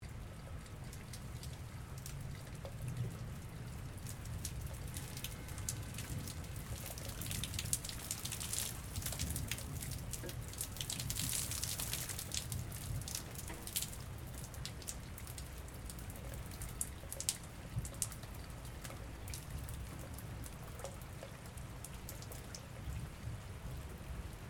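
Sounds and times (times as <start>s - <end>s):
medium water flow from drain: 0.1s - 24.4s.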